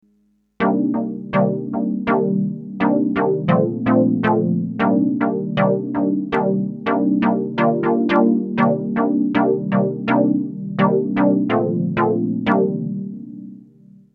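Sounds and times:
Roland JX 08 synthesizer: 0:00.6 - 0:14.1.

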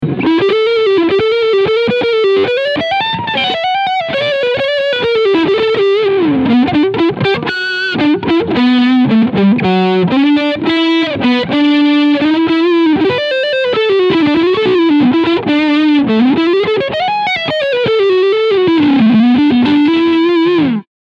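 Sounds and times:
lead guitar on front pickup: 0:00.0 - 0:20.9.

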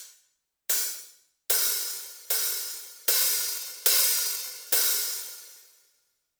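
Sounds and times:
dynamic hi-hat: 0:00.7 - 0:05.8.

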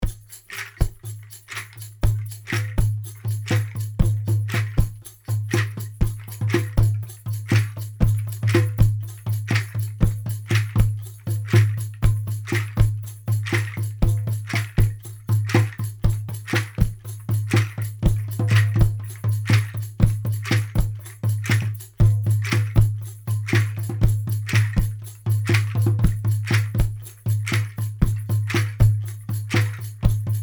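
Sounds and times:
percussion beat: 0:00.0 - 0:30.4.

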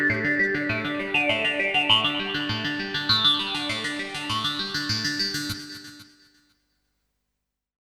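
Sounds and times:
synth arpeggio: 0:00.5 - 0:05.3.

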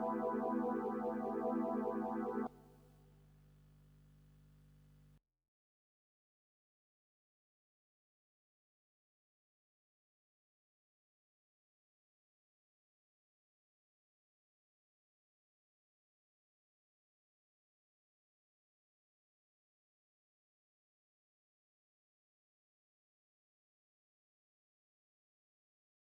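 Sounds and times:
Rhodes electric piano: 0:00.0 - 0:02.5
SE50 clavinet: 0:00.0 - 0:02.5.

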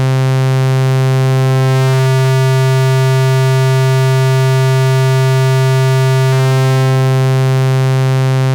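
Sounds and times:
constant oscillator feedback tone: 0:00.2 - 0:08.4.

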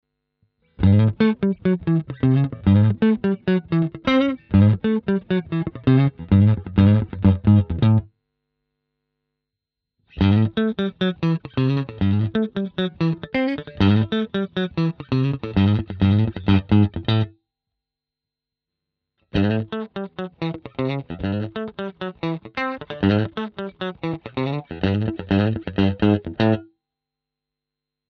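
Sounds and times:
groove on guitar in all positions: 0:00.8 - 0:08.1, 0:10.1 - 0:17.4, 0:19.4 - 0:26.7.

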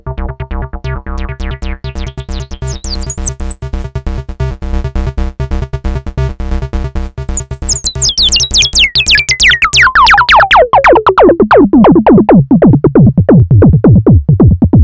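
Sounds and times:
filter effect: 0:02.7 - 0:04.6, 0:07.0 - 0:14.7.

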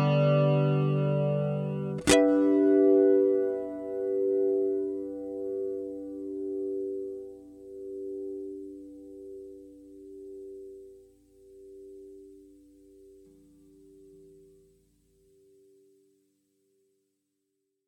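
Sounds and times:
hot guitar chords: 0:00.0 - 0:14.8.

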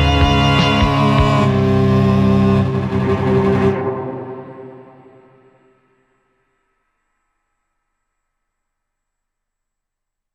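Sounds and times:
strings: 0:00.0 - 0:05.8.

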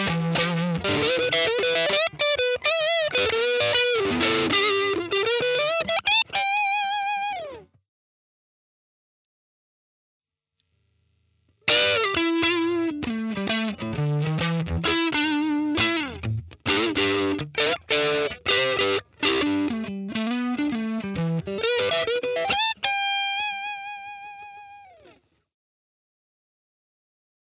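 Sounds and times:
Katana Fender electric guitar: 0:00.0 - 0:07.7, 0:11.6 - 0:25.2.

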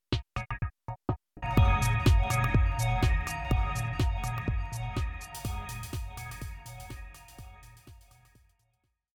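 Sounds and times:
sidechained remix music: 0:01.4 - 0:08.4.

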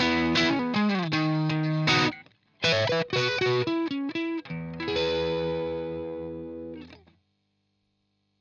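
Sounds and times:
distorted electric guitar riff through overdrive pedal: 0:00.0 - 0:07.0.

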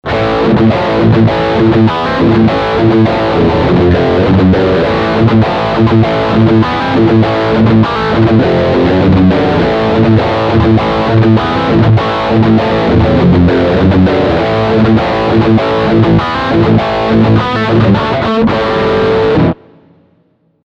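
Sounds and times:
electric guitar riff on bridge humbucker: 0:00.0 - 0:20.4.

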